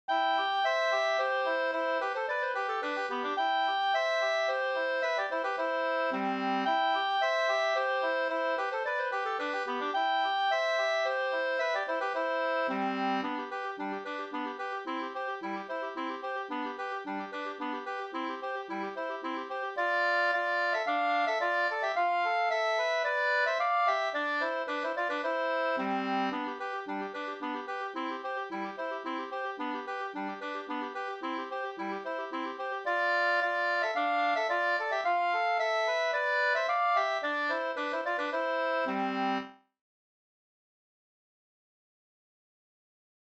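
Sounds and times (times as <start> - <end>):
two-part slangpolska: 0.1 - 39.6.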